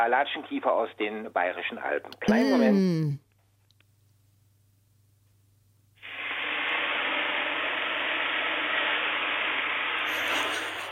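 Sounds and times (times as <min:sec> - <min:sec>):
speech: 0:00.0 - 0:03.2
water poured onto hot sauna stones hissing: 0:06.0 - 0:10.9.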